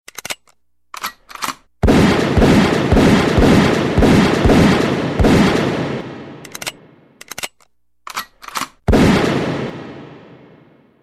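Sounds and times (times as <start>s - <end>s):
gun being loaded: 0.1s - 1.7s, 6.4s - 8.9s
gunshot: 1.8s - 6.4s, 8.9s - 10.9s.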